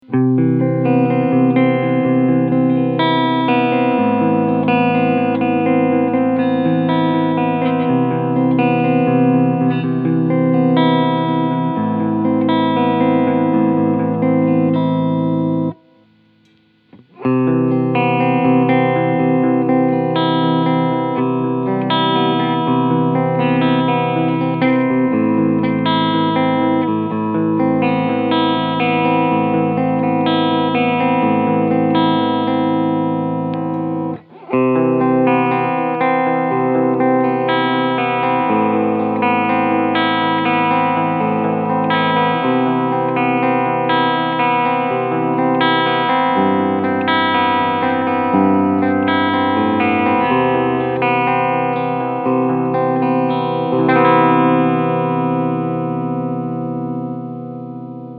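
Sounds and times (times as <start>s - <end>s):
Harley Benton SC 550 electric guitar clean sound, position 1: 0.0s - 58.1s.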